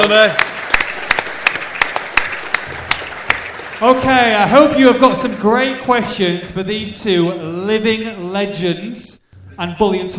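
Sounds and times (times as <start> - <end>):
speech: 0.0 - 0.5, 3.8 - 10.1
round of applause: 0.0 - 4.6.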